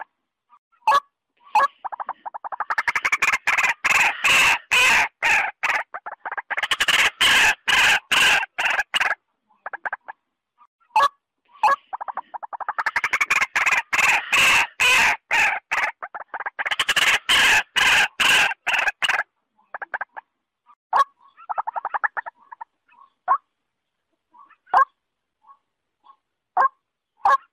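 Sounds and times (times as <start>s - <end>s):
waterhen-type calls: 0.7s - 10.2s, 10.8s - 20.2s, 20.9s - 23.5s, 24.3s - 27.5s.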